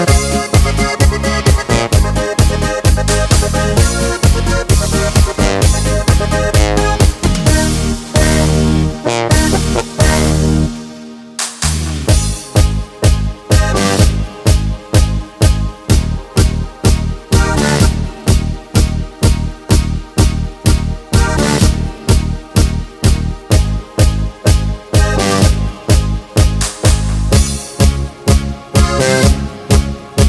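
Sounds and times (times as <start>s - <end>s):
lead melody in A flat without choir: 0.0s - 30.2s.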